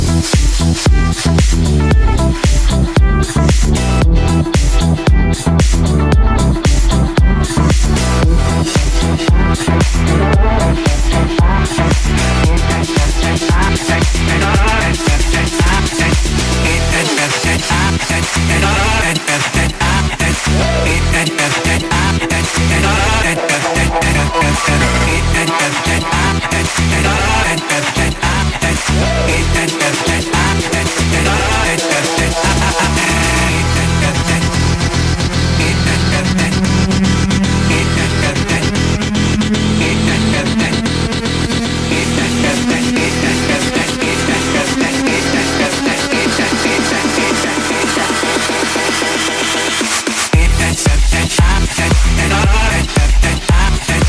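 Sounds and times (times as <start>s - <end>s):
funk music: 0.0s - 54.0s.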